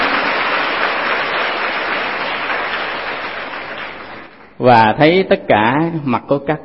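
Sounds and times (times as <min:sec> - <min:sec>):
large audience applauding: 0:00.0 - 0:04.6
speech: 0:04.6 - 0:06.6.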